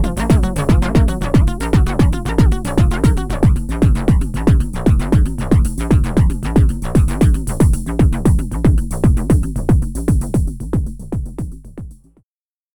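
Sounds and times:
Motor Synth MkII synthesizer voices: 0:00.0 - 0:03.5
external drums: 0:00.0 - 0:12.1.

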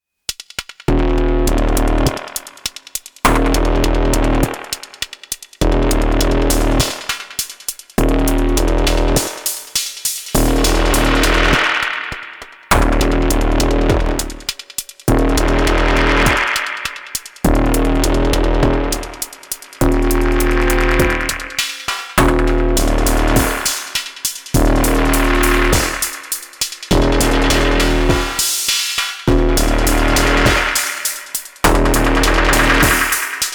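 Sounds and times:
Soma Pulsar-23 synth bass patch: 0:00.9 - 0:02.2, 0:03.3 - 0:04.6, 0:05.6 - 0:07.0, 0:08.0 - 0:09.3, 0:10.4 - 0:11.8, 0:12.7 - 0:14.5, 0:15.1 - 0:16.6, 0:17.4 - 0:21.6, 0:22.2 - 0:23.8, 0:24.6 - 0:28.5, 0:29.3 - 0:31.0, 0:31.6 - 0:33.4.

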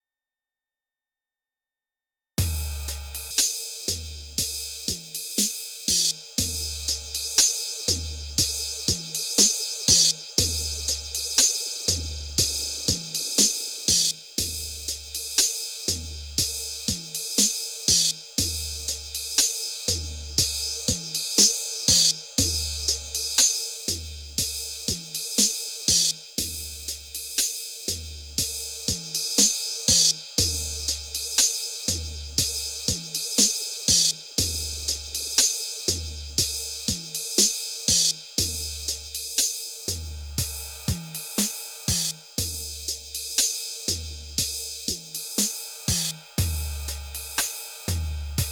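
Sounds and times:
drums with NTS-3 phaser effect: 0:02.4 - 0:48.4.

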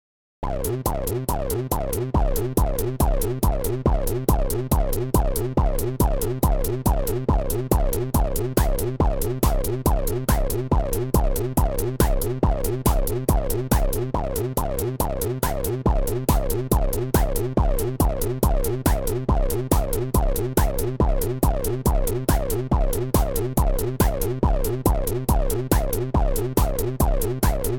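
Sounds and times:
drums: 0:00.4 - 0:27.7.

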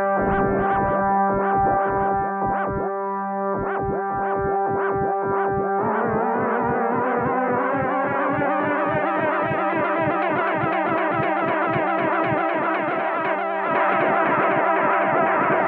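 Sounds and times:
Moog Muse synthesizer with delay: 0:00.1 - 0:15.6.

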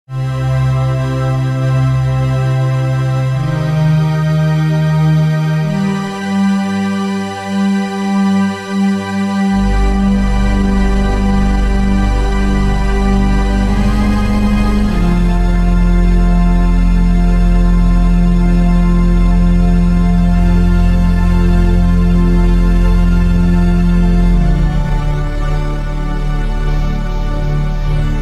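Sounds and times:
Waldorf Quantum synthesizer: 0:00.1 - 0:28.2.

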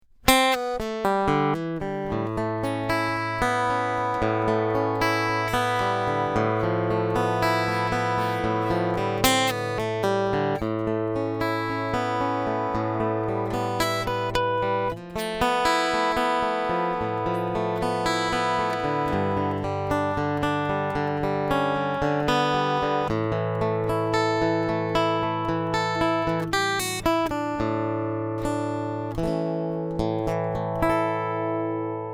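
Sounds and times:
PRS SE P50E guitar picking line: 0:00.3 - 0:32.1.

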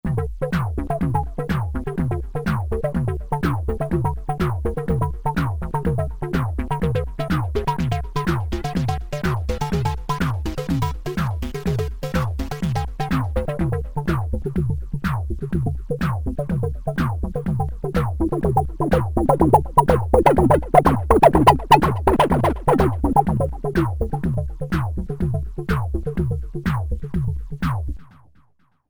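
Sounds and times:
music beat: 0:00.0 - 0:28.3.

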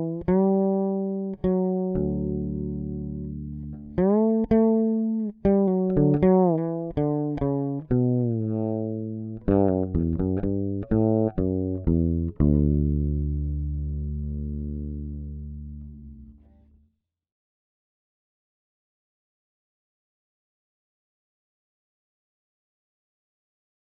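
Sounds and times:
fretless bass through a Radial J48: 0:00.0 - 0:16.8.

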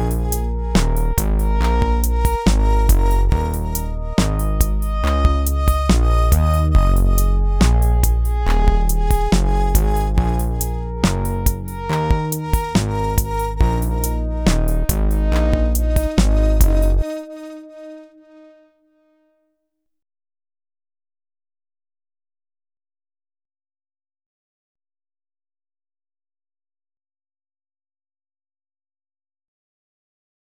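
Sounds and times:
slow Melbourne Instruments NINA synthesizer mix: 0:00.0 - 0:18.8.

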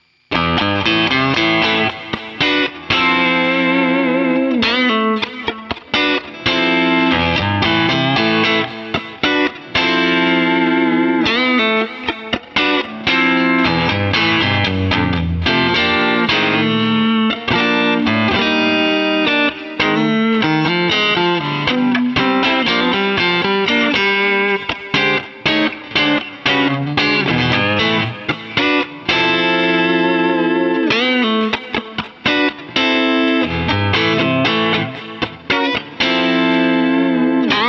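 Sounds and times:
direct input recording with Boss CS 3 compressor: 0:00.3 - 0:37.6.

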